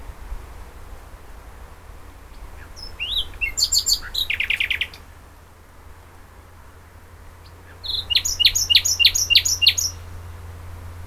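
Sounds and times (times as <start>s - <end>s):
common nightingale song, Luscinia megarhynchos: 2.3s - 5.1s, 7.4s - 10.2s.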